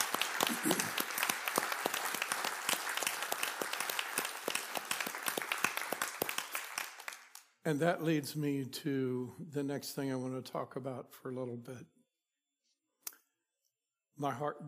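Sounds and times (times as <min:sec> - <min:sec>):
audience applause: 0:00.0 - 0:07.5
speech: 0:00.5 - 0:00.9, 0:07.6 - 0:12.0, 0:14.2 - 0:14.6.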